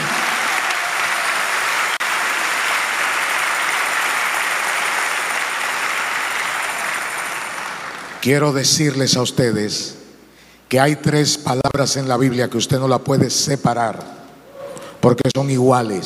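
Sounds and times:
audience applause: 0:00.0 - 0:08.3
speech: 0:08.2 - 0:10.0, 0:10.7 - 0:14.2, 0:15.0 - 0:16.0.

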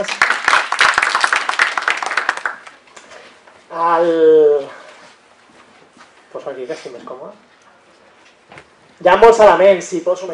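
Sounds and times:
speech: 0:00.0 - 0:00.2, 0:03.8 - 0:04.4, 0:06.4 - 0:07.6, 0:09.0 - 0:10.3
audience applause at a conference talk on educating adolescents: 0:00.0 - 0:02.8.

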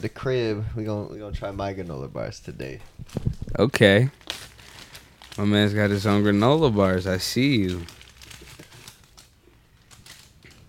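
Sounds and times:
speech: 0:00.0 - 0:04.2, 0:05.4 - 0:08.0
parchment paper crinkling and rustling: 0:02.8 - 0:10.6.

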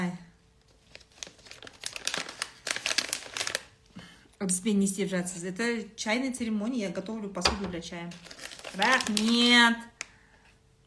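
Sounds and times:
plastic or paper packaging crinkling while being unwrapped: 0:00.5 - 0:03.9, 0:08.0 - 0:10.2
speech: 0:04.4 - 0:09.9.

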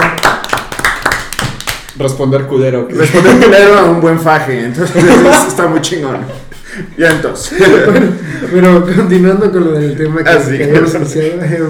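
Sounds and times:
hands clapping: 0:00.0 - 0:02.2, 0:07.0 - 0:07.4
speech: 0:02.0 - 0:11.6
laughter: 0:02.9 - 0:04.0, 0:04.8 - 0:09.4.

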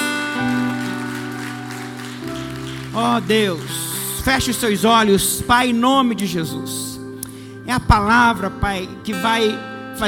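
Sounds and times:
audience applause: 0:00.0 - 0:04.6
speech: 0:03.0 - 0:06.9, 0:07.7 - 0:10.0.

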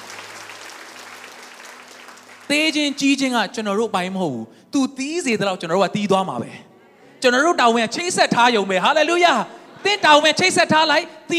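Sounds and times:
applause in a church during a Sunday sermon: 0:00.0 - 0:03.2
speech: 0:02.5 - 0:11.3.

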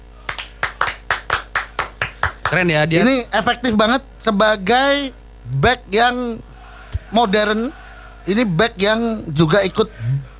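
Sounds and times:
low steady hum: 0:00.0 - 0:10.3
hand clapping in applause for a football coach: 0:00.3 - 0:02.7
speech: 0:02.5 - 0:06.5, 0:07.1 - 0:10.2.

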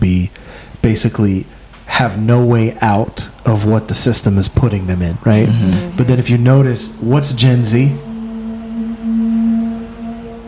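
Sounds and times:
speech: 0:00.9 - 0:08.1
motorcycle-like engine noise: 0:05.2 - 0:10.4.

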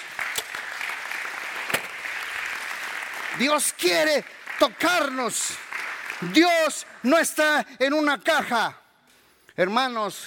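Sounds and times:
audience clapping: 0:00.0 - 0:08.1
speech: 0:03.4 - 0:05.6, 0:06.2 - 0:08.8, 0:09.6 - 0:10.2.

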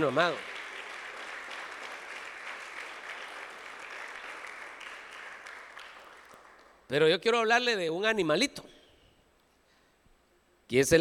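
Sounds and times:
speech: 0:00.0 - 0:00.5, 0:06.9 - 0:08.8, 0:10.7 - 0:11.0
audience applauding: 0:00.0 - 0:06.8.

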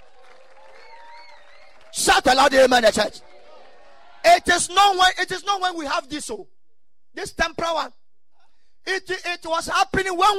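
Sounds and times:
audience clapping hands: 0:00.0 - 0:04.3
speech: 0:02.1 - 0:03.3, 0:04.2 - 0:06.5, 0:07.1 - 0:08.0, 0:08.8 - 0:10.3.

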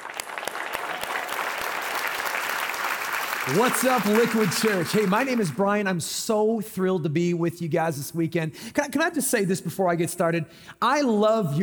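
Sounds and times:
church congregation applauding to welcome a guest pastor: 0:00.0 - 0:05.9
speech: 0:03.4 - 0:11.6.

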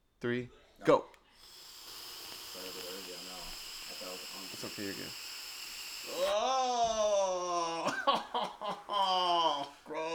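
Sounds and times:
speech: 0:00.2 - 0:01.5, 0:04.0 - 0:05.2, 0:06.0 - 0:10.1
long inhale from a smoking rip: 0:01.3 - 0:06.4.

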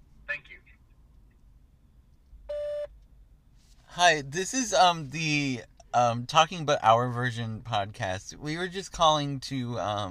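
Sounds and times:
answering-machine tone on a beverage company's customer-service voicemail line: 0:02.5 - 0:02.9
speech: 0:04.0 - 0:10.0.

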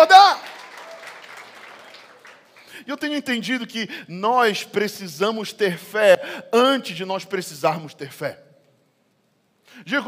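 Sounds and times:
audience applauding: 0:00.0 - 0:02.7
speech: 0:02.9 - 0:08.5, 0:09.7 - 0:10.0.

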